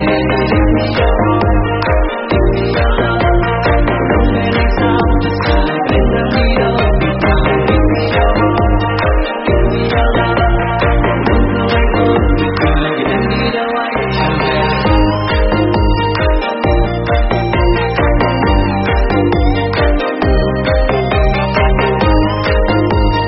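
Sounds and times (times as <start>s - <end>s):
remix music: 0.0s - 23.2s.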